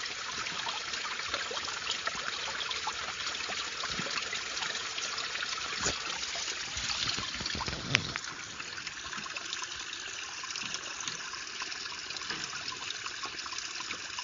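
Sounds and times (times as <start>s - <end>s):
water: 0.0s - 14.2s.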